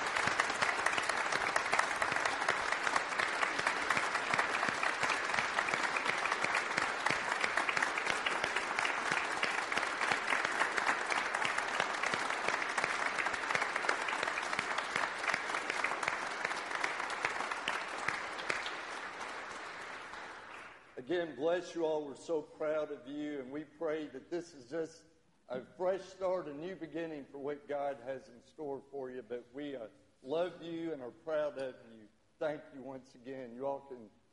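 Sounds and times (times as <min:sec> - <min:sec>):
audience applause: 0:00.0 - 0:21.0
speech: 0:21.1 - 0:34.2.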